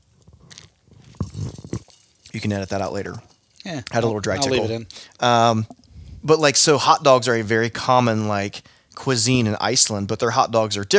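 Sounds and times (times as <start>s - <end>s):
person taking a drink: 0.2s - 2.4s, 3.6s - 6.3s
speech: 2.4s - 10.9s.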